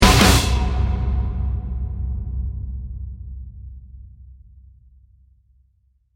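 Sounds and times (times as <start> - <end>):
action music: 0.0 - 2.8.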